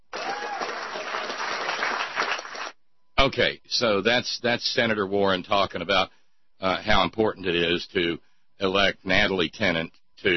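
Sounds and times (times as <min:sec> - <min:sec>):
audience applause: 0:00.0 - 0:02.8
speech: 0:03.2 - 0:10.3.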